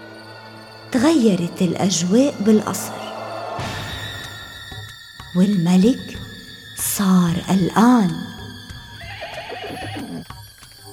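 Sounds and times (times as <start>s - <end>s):
speech: 0.9s - 3.7s, 5.3s - 6.2s, 6.8s - 8.3s
horse whinnying as riders set out to search: 9.0s - 10.3s.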